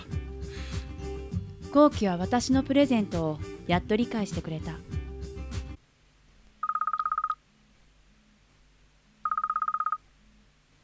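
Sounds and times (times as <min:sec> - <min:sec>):
speech: 0:01.7 - 0:04.9
telephone ringing: 0:06.6 - 0:07.4, 0:09.2 - 0:10.0.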